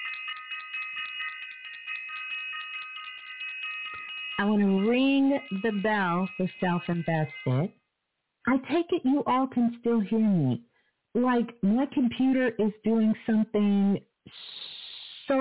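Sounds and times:
bell ringing: 0.0s - 7.7s
speech: 4.4s - 7.8s, 8.5s - 14.4s.

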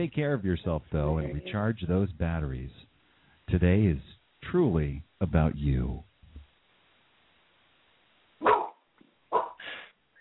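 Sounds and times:
speech: 0.0s - 2.9s, 3.5s - 6.1s
puppy barking: 8.4s - 9.7s.

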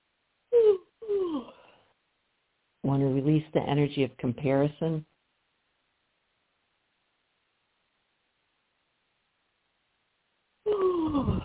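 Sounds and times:
speech: 2.9s - 5.1s
big deep breath with sighing exhales during a guided release meditation: 10.7s - 11.4s.

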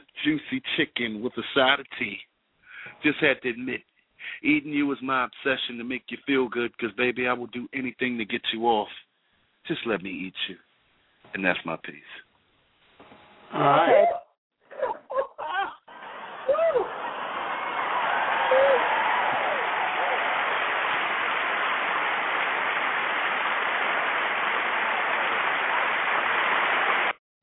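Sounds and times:
speech: 0.2s - 2.3s, 2.9s - 10.7s, 11.3s - 12.3s, 13.5s - 14.2s
audience clapping: 15.9s - 27.2s.

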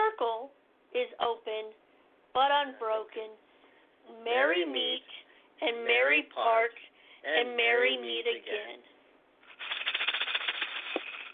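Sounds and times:
speech: 2.4s - 8.9s
cats running around upstairs: 9.5s - 11.3s.

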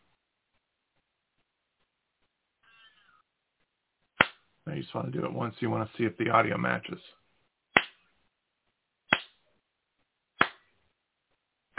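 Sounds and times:
hand claps for audio sync test: 4.2s - 4.4s, 7.7s - 8.0s, 9.1s - 9.4s, 10.4s - 10.7s
speech: 4.7s - 7.2s.

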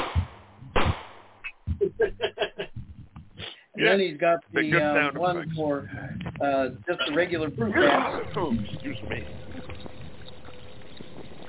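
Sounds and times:
gunshot sound effect for shooting fruit bats: 0.0s - 1.3s
laughter: 1.7s - 3.2s
speech: 3.8s - 9.4s.

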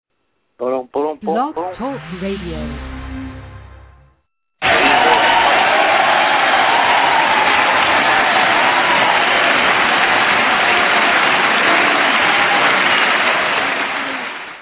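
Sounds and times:
speech: 1.2s - 3.2s
live studio audience cheering and applauding: 4.6s - 14.5s.

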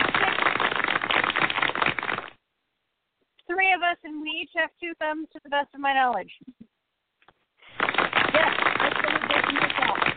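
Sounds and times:
applause: 0.0s - 2.4s, 7.6s - 10.1s
speech: 3.7s - 6.6s.

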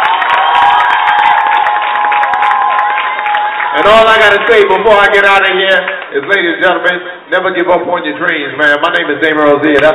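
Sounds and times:
audience cheering: 0.0s - 5.0s
audience applause: 0.0s - 6.4s
speech: 3.8s - 9.9s.

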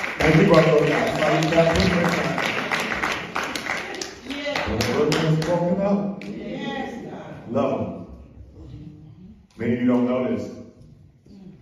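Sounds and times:
audience clapping: 0.0s - 6.4s
speech: 0.3s - 2.4s, 9.6s - 10.6s.

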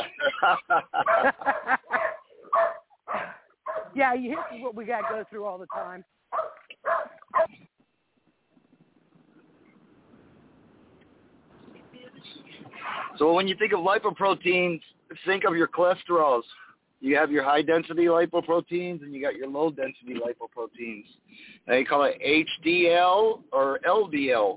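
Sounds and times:
laughter: 0.0s - 2.2s
speech: 0.5s - 1.4s, 4.0s - 6.2s, 13.2s - 24.5s
dog barking: 1.0s - 7.6s.

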